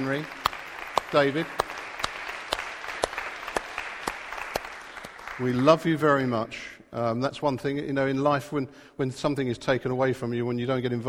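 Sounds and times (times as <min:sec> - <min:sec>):
speech: 0:00.0 - 0:00.4, 0:01.1 - 0:01.7, 0:05.4 - 0:11.0
audience applause: 0:00.0 - 0:06.0.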